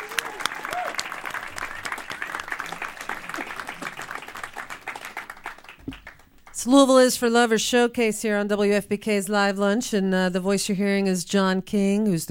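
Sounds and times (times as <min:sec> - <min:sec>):
audience applause: 0:00.0 - 0:06.6
speech: 0:06.6 - 0:12.2.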